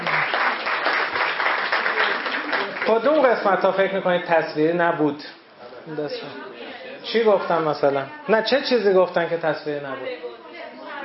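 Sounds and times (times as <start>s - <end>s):
audience applauding: 0.0s - 3.4s
speech: 2.9s - 10.3s.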